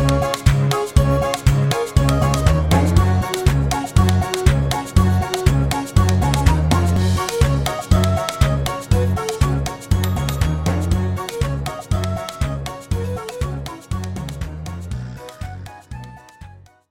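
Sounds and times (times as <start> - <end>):
comical character story background music: 0.0 - 16.8.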